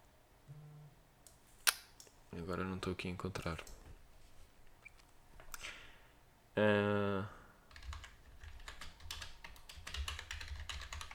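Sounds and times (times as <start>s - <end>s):
faint low hum: 0.0s - 11.1s
speech: 2.4s - 3.8s, 6.6s - 7.4s
typing on a computer keyboard: 7.7s - 11.1s.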